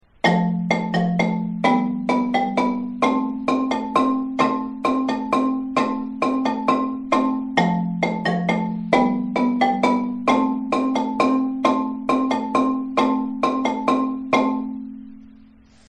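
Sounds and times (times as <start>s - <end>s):
marimba pre-chorus: 0.0s - 15.8s.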